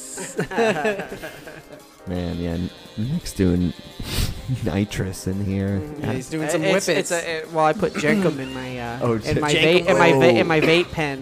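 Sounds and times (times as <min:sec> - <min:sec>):
laughter: 0:00.0 - 0:01.9
speech: 0:00.2 - 0:11.1
person imitating a balloon losing air: 0:04.0 - 0:04.5.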